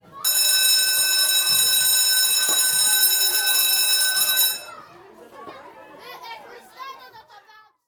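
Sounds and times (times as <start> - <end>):
school bell ringing: 0.0 - 4.8.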